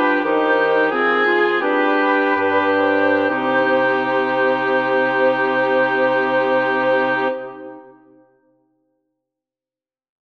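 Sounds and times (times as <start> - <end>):
woodwind quartet playing: 0.0 - 8.0.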